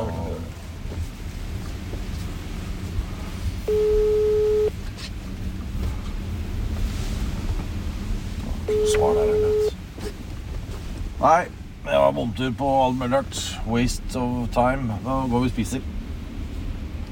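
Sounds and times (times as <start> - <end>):
low wind-like rumble: 0.0 - 17.1
phone ringing tone: 3.7 - 4.7, 8.7 - 9.8
speech: 11.2 - 16.0.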